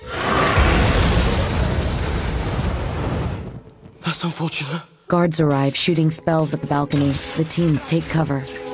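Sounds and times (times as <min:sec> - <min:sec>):
dragon's fire blast in a fantasy film scene in a goblin bank: 0:00.0 - 0:03.7
speech: 0:04.2 - 0:08.6.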